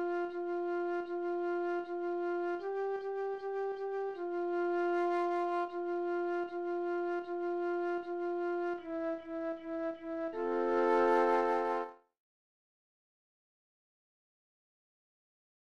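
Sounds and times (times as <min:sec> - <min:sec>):
slow flute piece: 0:00.0 - 0:12.0.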